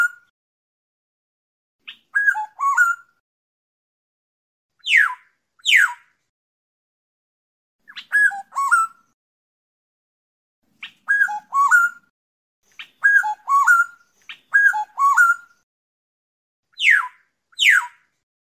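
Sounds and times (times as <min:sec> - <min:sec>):
black-naped oriole fluting whistles: 0:01.9 - 0:03.2, 0:04.8 - 0:06.0, 0:07.9 - 0:09.1, 0:10.8 - 0:12.1, 0:12.7 - 0:15.6, 0:16.8 - 0:18.0.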